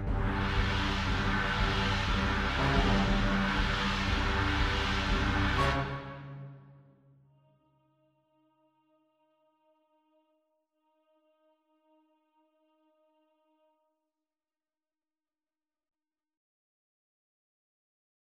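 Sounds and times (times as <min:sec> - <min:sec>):
orchestral accompaniment: 0:00.0 - 0:06.7.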